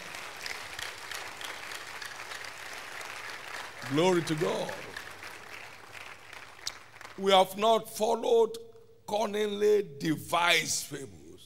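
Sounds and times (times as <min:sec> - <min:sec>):
audience clapping: 0:00.0 - 0:07.6
speech: 0:03.8 - 0:04.9, 0:07.2 - 0:11.2.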